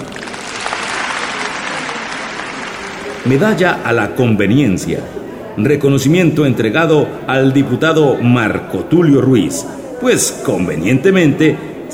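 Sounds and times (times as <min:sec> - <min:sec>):
audience applause: 0:00.0 - 0:03.9
speech: 0:03.2 - 0:11.9.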